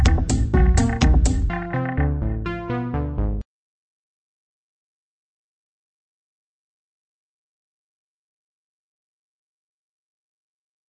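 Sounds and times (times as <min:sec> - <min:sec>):
dark tech house music: 0:00.0 - 0:03.4.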